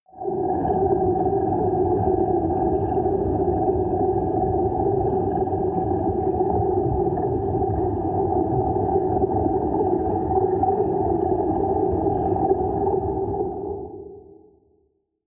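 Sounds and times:
dark water sound effect: 0:00.1 - 0:14.8.

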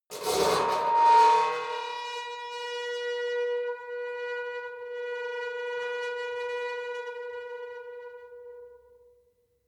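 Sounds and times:
saturated intense metal squeal: 0:00.2 - 0:07.8.

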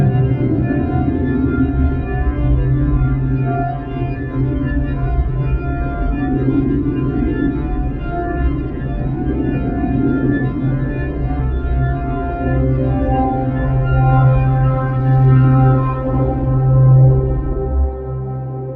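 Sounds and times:
frantic attuning drone: 0:00.0 - 0:18.7.

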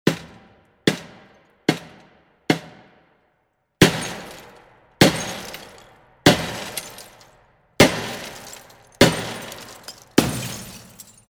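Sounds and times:
glass breaking: 0:03.8 - 0:11.2.

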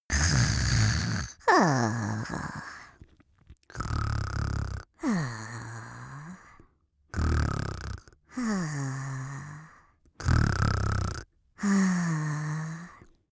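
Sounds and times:
goblin snoring in a comedy cartoon: 0:00.1 - 0:03.0, 0:03.7 - 0:13.1.

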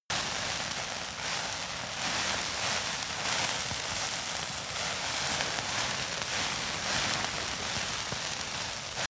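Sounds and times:
small object fire burning: 0:00.1 - 0:09.0.

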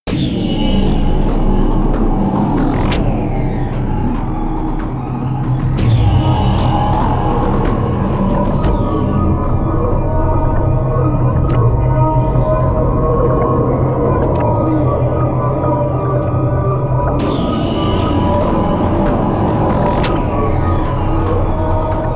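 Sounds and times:
drone sound: 0:00.1 - 0:22.1.

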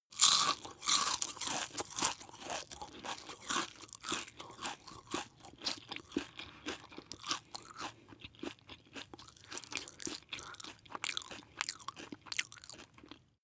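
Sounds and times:
biscuit chewing: 0:00.1 - 0:13.4.

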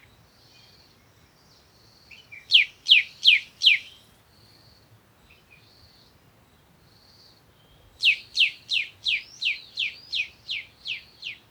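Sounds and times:
African bush morning birds calling: 0:02.5 - 0:04.0, 0:08.0 - 0:11.4.

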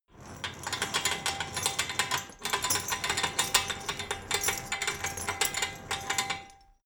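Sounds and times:
metal chain rattling: 0:00.1 - 0:06.8.

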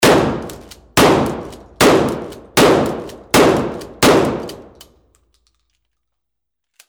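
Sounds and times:
20 gauge shotgun shots: 0:00.0 - 0:04.8.

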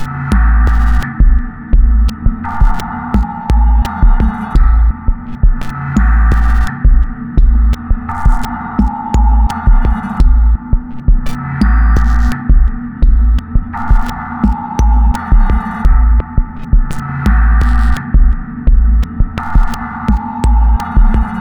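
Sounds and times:
dark electronic beat sequence: 0:00.0 - 0:21.3.

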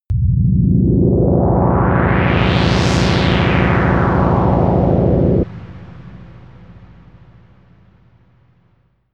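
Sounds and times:
dangerous universe synth pad: 0:00.1 - 0:08.9.

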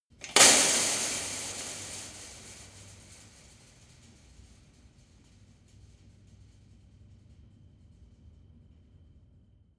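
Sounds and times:
long impact on a metal fence: 0:00.2 - 0:05.4.

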